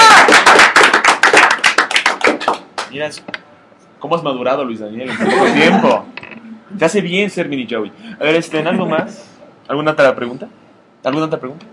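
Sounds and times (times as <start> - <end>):
applause from a small group: 0.0 - 3.0
speech: 3.0 - 3.4, 4.0 - 11.7
laughter: 5.1 - 6.8.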